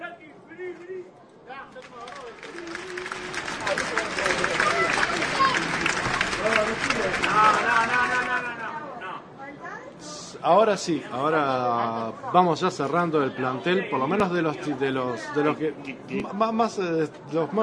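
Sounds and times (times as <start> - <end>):
applause: 1.7 - 8.8
speech: 10.4 - 17.6.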